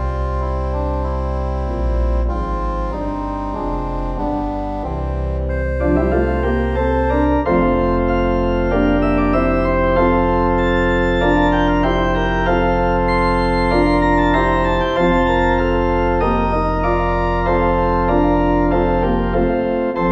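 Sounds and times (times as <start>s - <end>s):
prelude in F: 0.0s - 20.1s.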